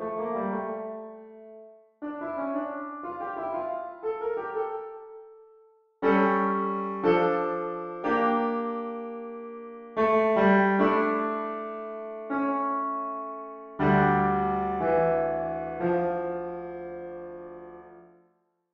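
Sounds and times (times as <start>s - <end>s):
easy piano music: 0.0s - 18.2s.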